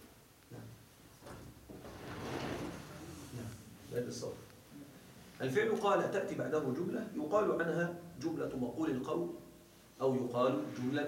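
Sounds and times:
window being opened: 1.6s - 3.4s
speech: 3.9s - 4.5s, 5.4s - 9.4s, 10.0s - 11.0s.

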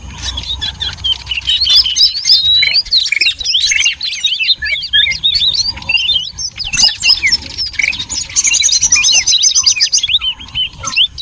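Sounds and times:
noisy birds chirping in a dense chorus used as a lure: 0.0s - 11.2s.

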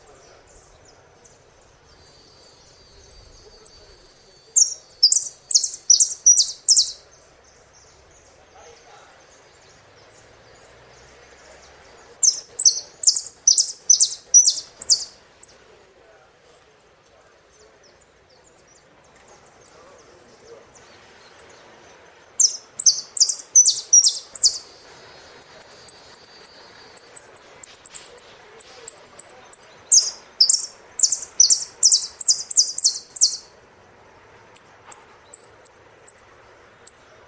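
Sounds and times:
saffron finch song: 0.0s - 37.2s.

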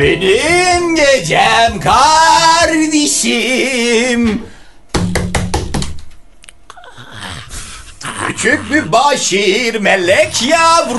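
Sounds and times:
speech: 0.0s - 4.5s, 8.4s - 10.9s
knocking on a door: 4.9s - 6.0s.

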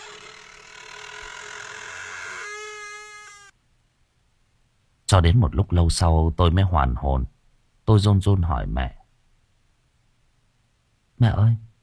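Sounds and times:
door creaking: 0.0s - 3.6s
speech: 5.1s - 7.3s, 7.9s - 9.0s, 11.2s - 11.7s.

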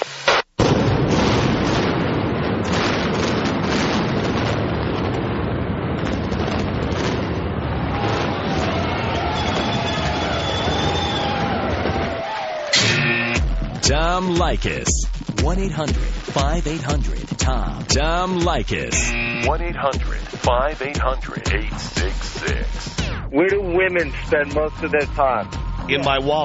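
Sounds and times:
explosion sound effect in the style of the Kingdome stadium demolition: 0.6s - 26.4s
speech: 14.2s - 26.4s.

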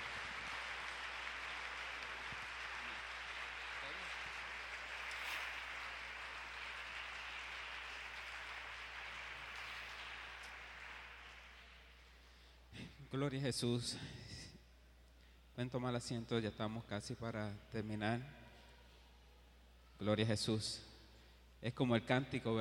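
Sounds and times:
audience applause: 0.0s - 12.0s
speech: 13.1s - 14.2s, 15.6s - 18.4s, 20.0s - 20.9s, 21.6s - 22.5s.

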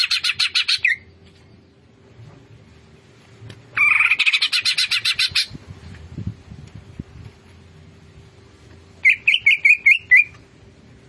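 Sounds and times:
Greater green leafbird singing fast chattering notes: 0.0s - 1.1s, 3.8s - 5.6s, 9.0s - 10.4s.

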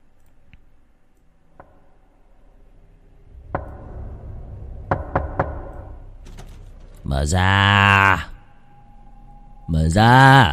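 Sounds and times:
wind blowing at night: 2.1s - 7.4s
man knocking on a wooden door at night: 4.9s - 5.7s
speech: 7.1s - 8.3s, 9.7s - 10.5s.

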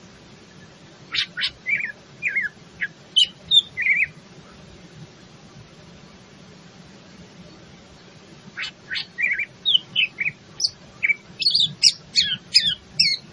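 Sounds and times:
leafbird cucak ijo singing rapid high chatter and twisting whistled notes: 1.1s - 4.2s, 8.5s - 13.3s.

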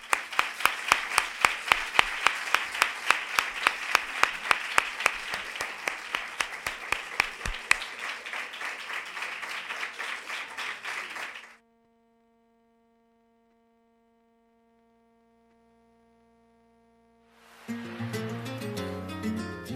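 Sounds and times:
audience applause at a flamenco education event: 0.0s - 11.6s, 17.6s - 19.6s.

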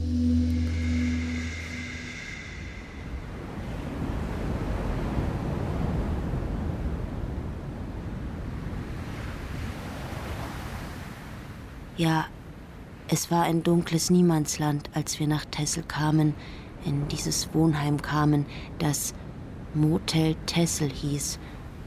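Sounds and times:
strong wind blowing: 0.0s - 11.0s
speech: 12.0s - 12.4s, 13.1s - 21.6s.

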